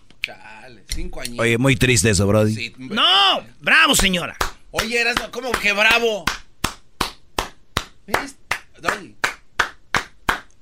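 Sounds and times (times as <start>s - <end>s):
speech: 0.2s - 6.4s, 8.1s - 9.2s
hand clapping: 4.0s - 10.5s.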